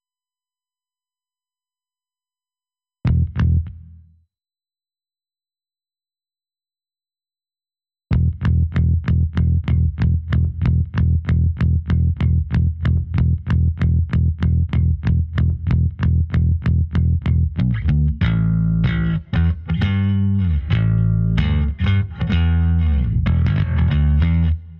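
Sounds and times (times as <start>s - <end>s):
bass: 3.1s - 4.2s, 8.1s - 24.7s.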